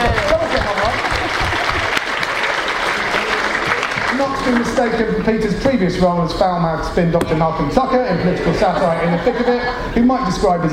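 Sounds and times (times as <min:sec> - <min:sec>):
applause: 0:00.0 - 0:05.0
speech: 0:04.5 - 0:10.7
laughter: 0:07.8 - 0:10.7.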